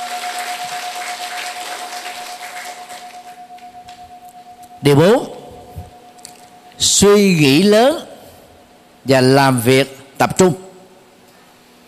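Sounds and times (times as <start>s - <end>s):
round of applause: 0.0s - 3.7s
speech: 4.8s - 5.3s, 7.0s - 8.1s, 9.0s - 10.6s.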